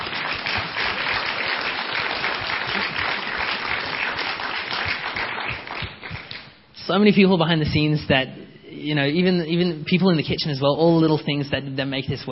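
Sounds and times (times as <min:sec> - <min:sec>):
audience round of applause: 0:00.0 - 0:06.5
speech: 0:06.9 - 0:12.3.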